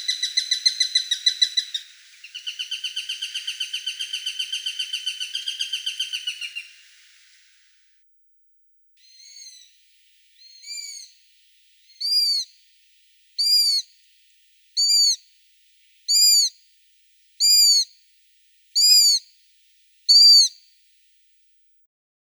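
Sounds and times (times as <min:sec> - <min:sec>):
sparrowhawk calling: 0:00.0 - 0:07.4, 0:09.0 - 0:12.6, 0:13.4 - 0:14.1, 0:14.7 - 0:15.3, 0:16.0 - 0:16.6, 0:17.4 - 0:17.9, 0:18.8 - 0:19.3, 0:20.1 - 0:20.6.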